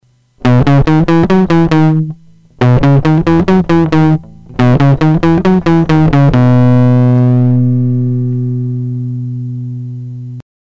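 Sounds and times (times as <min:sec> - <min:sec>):
guitar: 0:00.4 - 0:10.4.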